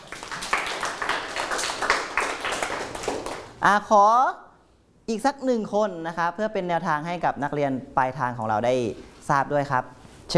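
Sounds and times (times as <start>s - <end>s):
students clapping hands: 0.0s - 3.6s
speech: 3.6s - 4.4s, 5.1s - 10.3s.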